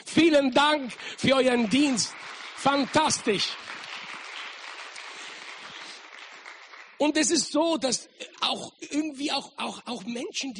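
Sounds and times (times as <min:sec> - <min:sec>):
speech: 0:00.2 - 0:03.7, 0:07.0 - 0:10.5
audience applause: 0:00.7 - 0:07.0.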